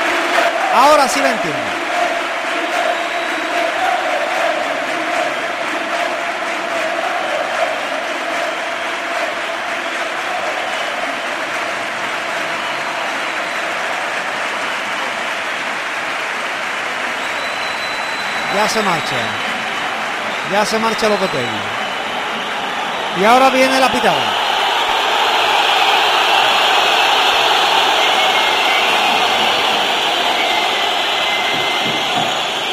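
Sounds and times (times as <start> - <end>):
stadium crowd ovation: 0.0 - 32.7
speech: 0.7 - 1.8, 18.6 - 19.5, 20.5 - 21.8, 23.2 - 24.4.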